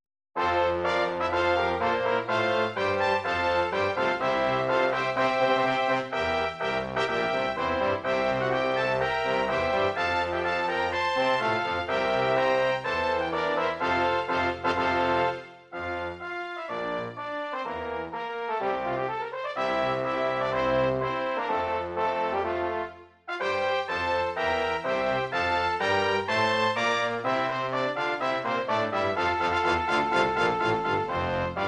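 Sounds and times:
national anthem: 0.4s - 31.6s.

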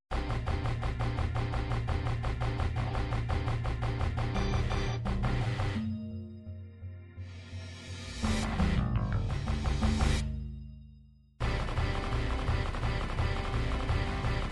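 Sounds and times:
MIDI hard rock music: 0.1s - 6.0s, 8.0s - 10.4s, 11.4s - 14.5s.

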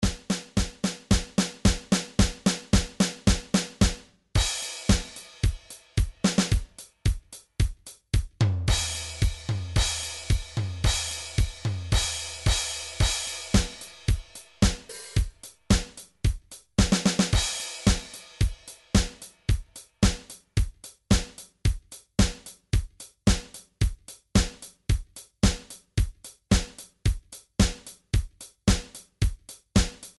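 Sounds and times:
midi drums: 0.0s - 30.1s.

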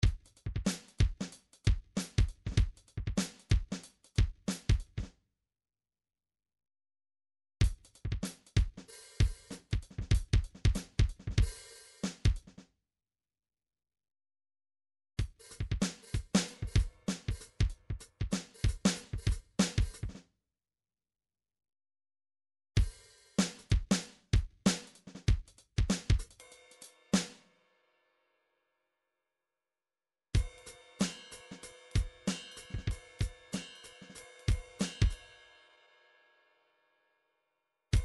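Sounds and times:
MIDI drums: 0.0s - 5.1s, 7.6s - 12.6s, 15.2s - 20.2s, 22.8s - 26.4s, 30.4s - 35.2s.

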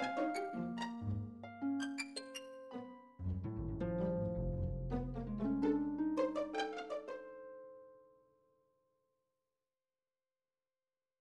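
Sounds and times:
classical 12-tone MIDI music: 0.0s - 7.1s.

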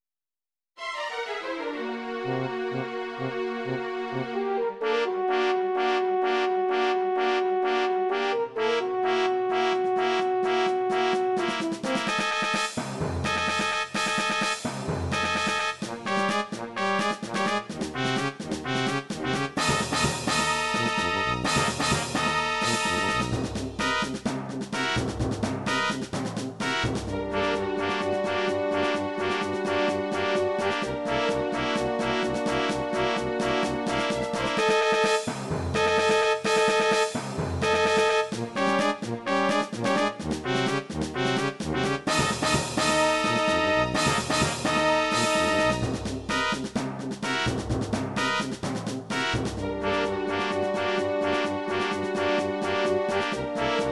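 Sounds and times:
orchestral battle music: 0.8s - 53.9s.

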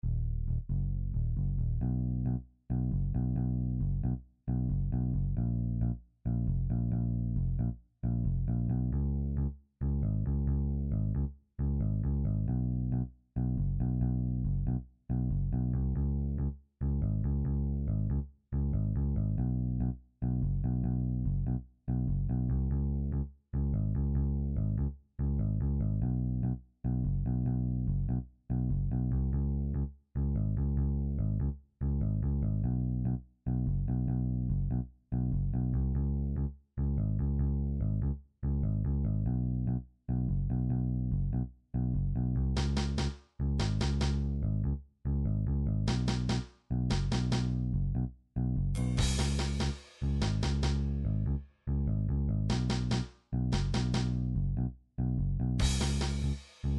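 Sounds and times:
bass jam: 0.0s - 56.7s.

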